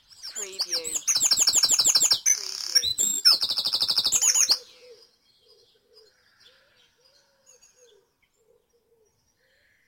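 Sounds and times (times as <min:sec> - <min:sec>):
birds dawn chorus in Mold North Wales: 0:00.0 - 0:09.8.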